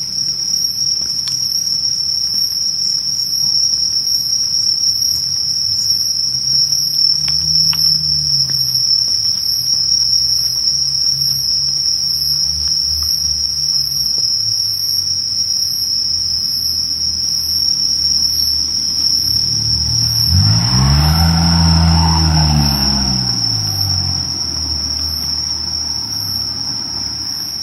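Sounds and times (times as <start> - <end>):
insects trilling on a summer night: 0.0 - 27.6
low rumbling: 16.2 - 27.6
passing sound: 18.0 - 27.2.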